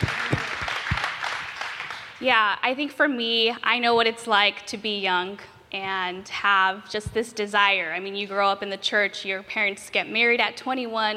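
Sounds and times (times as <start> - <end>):
clapping: 0.0 - 2.2
speech: 2.2 - 11.1.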